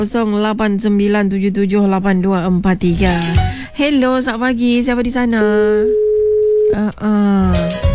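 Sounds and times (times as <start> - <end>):
speech: 0.0 - 6.0, 6.7 - 7.8
telephone line tones from a dropped phone-in call: 5.7 - 6.8
busy signal pulses: 5.8 - 6.8.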